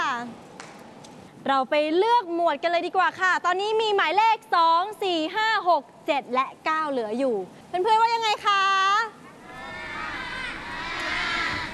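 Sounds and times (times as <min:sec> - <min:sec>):
speech: 0:01.4 - 0:09.0
children shouting and cheering during a kids' game show: 0:09.4 - 0:11.7.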